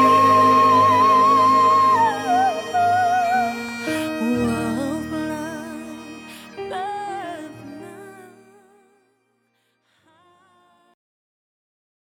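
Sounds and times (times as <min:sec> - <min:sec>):
gospel singing: 0:00.0 - 0:08.3.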